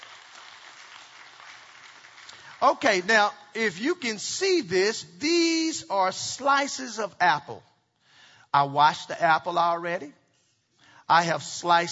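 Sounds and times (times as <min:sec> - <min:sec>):
audience hand clapping: 0:00.0 - 0:03.2
speech: 0:02.6 - 0:07.7, 0:08.5 - 0:10.2, 0:11.1 - 0:11.9.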